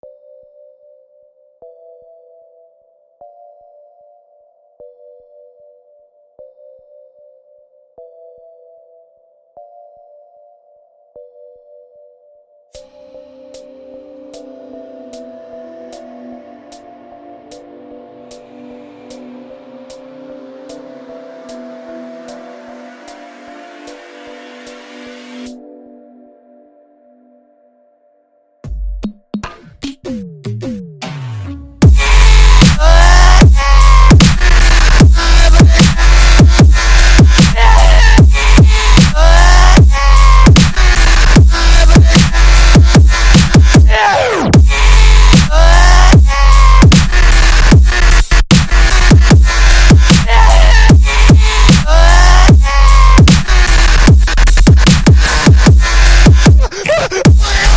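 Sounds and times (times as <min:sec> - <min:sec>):
screamstep music: 0:12.8 - 0:25.7, 0:28.8 - 0:57.7.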